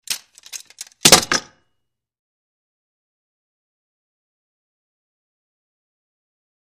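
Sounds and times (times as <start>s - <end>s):
sword being set down: 0.1s - 1.6s.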